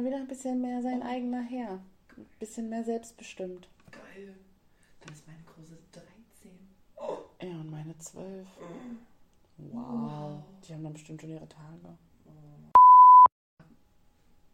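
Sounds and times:
speech: 0.0s - 6.1s, 7.0s - 12.5s
censor bleep over spoken word: 12.8s - 13.3s.

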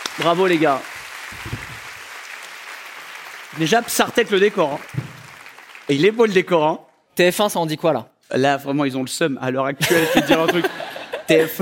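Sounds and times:
audience applause: 0.0s - 6.4s
speech: 0.2s - 1.6s, 3.6s - 5.0s, 5.9s - 11.5s
laughter: 9.8s - 11.5s.

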